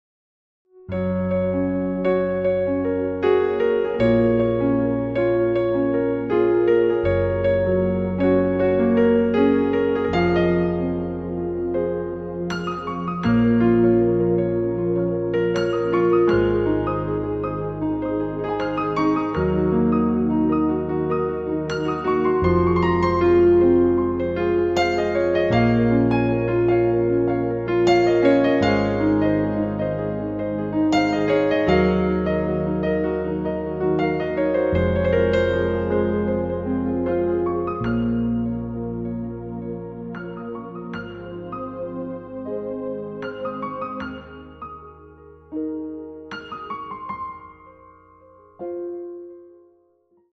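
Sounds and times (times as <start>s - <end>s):
piano: 0.7s - 50.3s.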